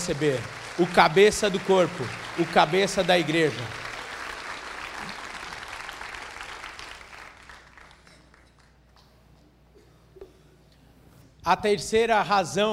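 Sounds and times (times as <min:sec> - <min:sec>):
speech: 0:00.0 - 0:03.8, 0:11.4 - 0:12.7
audience applause: 0:00.0 - 0:08.7.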